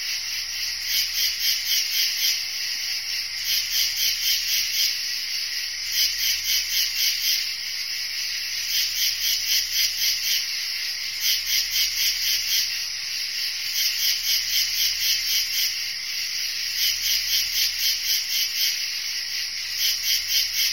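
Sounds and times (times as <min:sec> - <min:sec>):
crickets chirping: 0:00.0 - 0:20.7.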